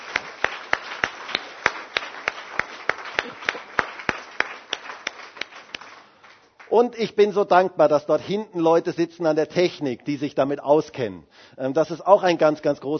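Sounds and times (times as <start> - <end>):
audience applauding: 0.0 - 6.8
speech: 6.7 - 12.9.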